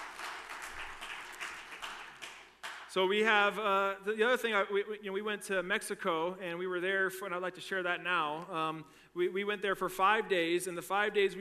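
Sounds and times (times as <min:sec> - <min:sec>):
church congregation clapping: 0:00.0 - 0:03.0
speech: 0:02.9 - 0:11.3.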